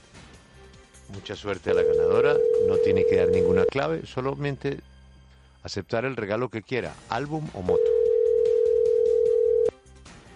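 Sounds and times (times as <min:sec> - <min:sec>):
speech: 0:01.1 - 0:04.9, 0:05.6 - 0:07.9
steady single-pitched telephone tone: 0:01.7 - 0:03.7, 0:07.7 - 0:09.7.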